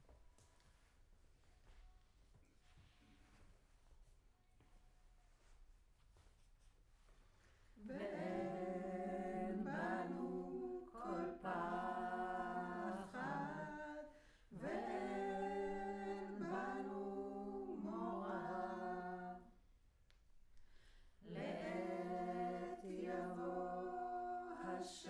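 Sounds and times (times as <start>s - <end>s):
choir singing in room: 7.8s - 19.6s, 21.2s - 25.0s.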